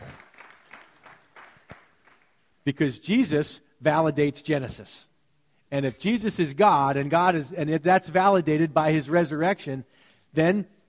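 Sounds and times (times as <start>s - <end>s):
audience clapping: 0.0s - 2.6s
speech: 2.6s - 5.1s, 5.7s - 10.8s.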